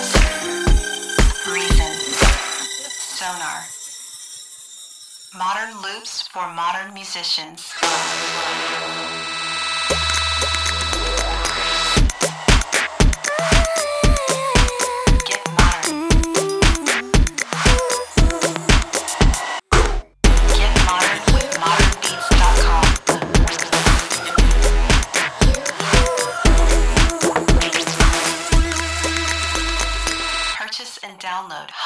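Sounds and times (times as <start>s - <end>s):
RnB club drum loop: 0.0s - 2.8s, 9.9s - 30.6s.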